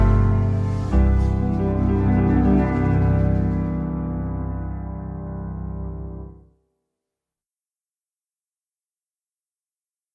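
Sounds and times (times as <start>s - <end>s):
musical accompaniment in C: 0.0s - 6.4s.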